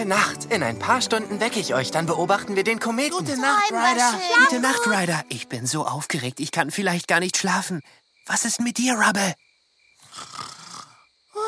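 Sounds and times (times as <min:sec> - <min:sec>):
speech: 0:00.0 - 0:09.4
puppy snoring in its doghouse at night: 0:10.0 - 0:11.0.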